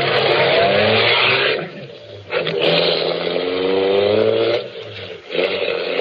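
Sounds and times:
car with a nearly empty fuel tank driving away: 0.0 - 5.9.

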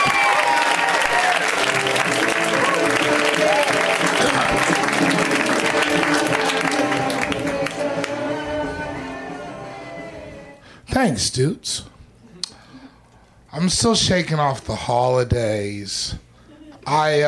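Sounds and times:
audience applauding and cheering for a comedian: 0.0 - 10.6
speech: 11.1 - 11.9, 13.6 - 16.2, 16.9 - 17.2.

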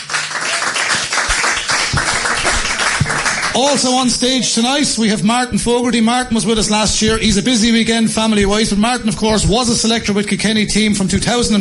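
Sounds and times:
audience applause: 0.0 - 4.1
speech: 3.6 - 11.6.

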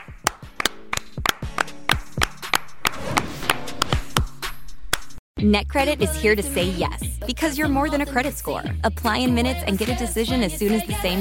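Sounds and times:
hands clapping: 0.0 - 4.3
speech: 5.4 - 11.1.

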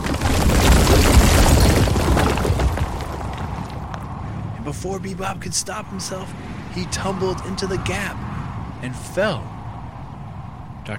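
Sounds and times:
tower crumbling and splitting in two: 0.0 - 3.9
speech: 4.8 - 9.6.

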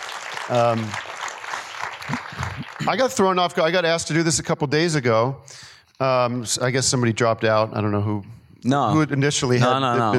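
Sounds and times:
audience applause: 0.0 - 3.5
speech: 0.5 - 1.1, 2.8 - 10.1.

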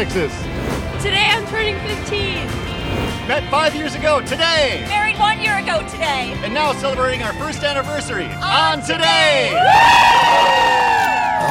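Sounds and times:
speech: 0.0 - 10.8
crowd cheering and whooping outside: 9.0 - 11.4
overlapping shouts: 9.0 - 11.4.

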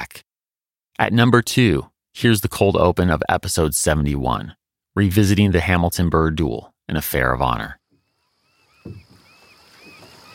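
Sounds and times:
speech: 1.0 - 7.8, 8.8 - 9.0
oars rowing a boat on river: 7.9 - 10.3.

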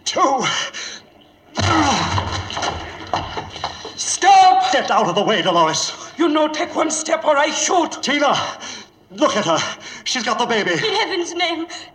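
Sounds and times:
speech: 0.1 - 0.9, 4.7 - 11.9
locked door being broken down: 1.6 - 4.0.

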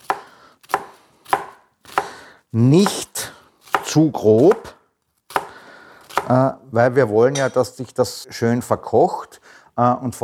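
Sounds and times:
knife dicing an onion on a cutting board: 0.0 - 2.2, 2.8 - 4.7, 5.3 - 6.4
speech: 2.5 - 3.1, 3.9 - 4.7, 6.3 - 10.2.

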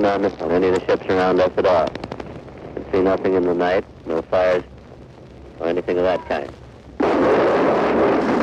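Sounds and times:
speech: 0.0 - 2.1, 2.9 - 4.7, 5.6 - 6.6
wartime gunfire during a battle: 7.0 - 8.4.

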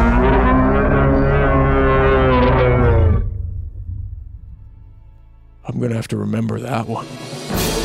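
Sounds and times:
bellowing roar of a hulking bipedal wolf creature: 0.0 - 3.5
speech: 5.8 - 7.7.

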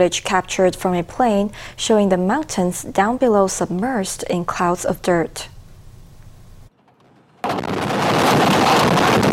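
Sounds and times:
speech: 0.0 - 5.5
rocks crashing down in earthquake landslide: 6.9 - 9.3.

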